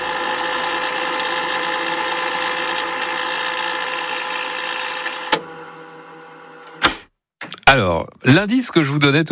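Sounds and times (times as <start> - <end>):
cassette tape rewinding: 0.0 - 6.8
speech: 7.7 - 9.3.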